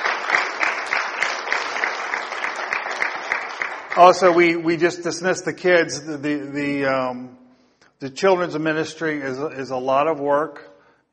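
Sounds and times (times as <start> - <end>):
audience applause: 0.0 - 4.8
speech: 4.0 - 7.4, 8.0 - 11.1.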